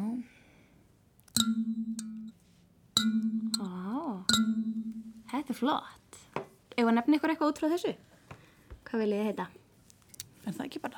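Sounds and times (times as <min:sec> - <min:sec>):
kalimba notes plucked: 0:01.4 - 0:02.4, 0:03.0 - 0:05.3
speech: 0:05.5 - 0:06.0, 0:06.8 - 0:08.1, 0:08.9 - 0:09.6, 0:10.4 - 0:10.9.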